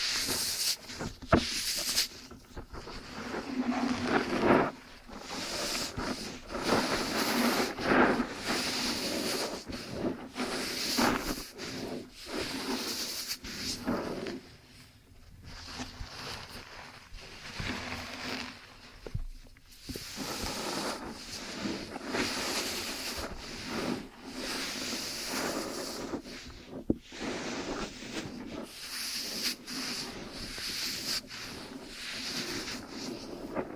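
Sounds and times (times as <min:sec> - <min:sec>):
ear cleaning and kinetic sand crackly scratches and rustles: 0:00.0 - 0:33.7.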